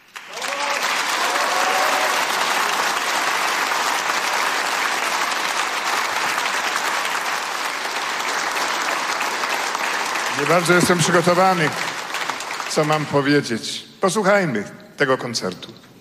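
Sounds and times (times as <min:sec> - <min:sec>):
concert audience applauding the artist: 0:00.0 - 0:13.6
faint voices and cheers: 0:00.3 - 0:02.6
speech: 0:10.4 - 0:11.9, 0:12.7 - 0:15.9.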